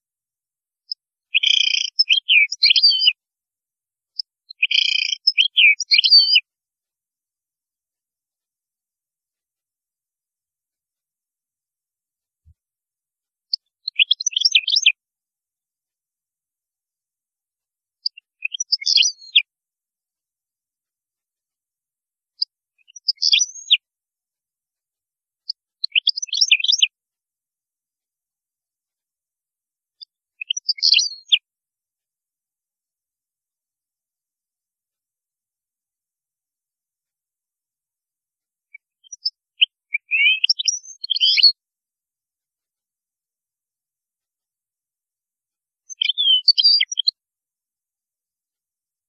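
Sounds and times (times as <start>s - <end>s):
European goldfinch song: 0.9s - 3.2s, 4.2s - 6.5s, 13.5s - 15.0s, 18.0s - 19.5s, 22.4s - 23.8s, 25.4s - 27.0s, 30.0s - 31.5s, 38.6s - 41.6s, 45.8s - 47.2s.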